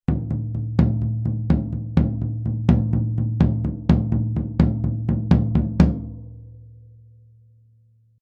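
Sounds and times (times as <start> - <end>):
tom drum recorded with DPA 4099: 0.1 - 6.4.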